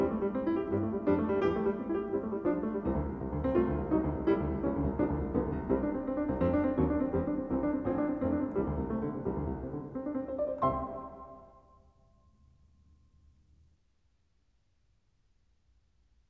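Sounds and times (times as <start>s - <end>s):
piano piece in C major: 0.0s - 12.6s.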